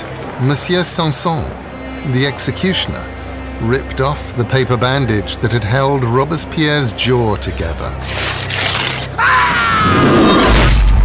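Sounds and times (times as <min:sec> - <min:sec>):
speech: 0:00.4 - 0:08.6
harsh strained scream: 0:09.2 - 0:10.4.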